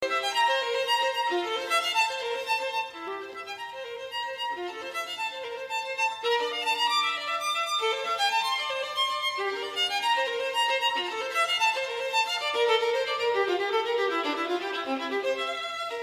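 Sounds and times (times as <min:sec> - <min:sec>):
violin: 0:00.0 - 0:16.0.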